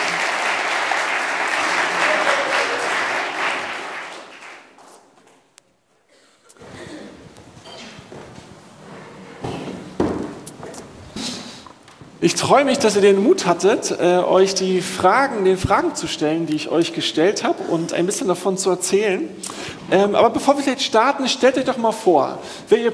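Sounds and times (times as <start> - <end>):
audience applause: 0.0 - 5.0
speech: 12.2 - 22.9.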